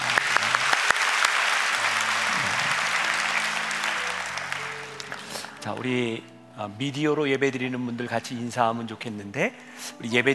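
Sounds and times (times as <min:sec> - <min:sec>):
audience applauding: 0:00.0 - 0:05.8
speech: 0:05.6 - 0:10.3.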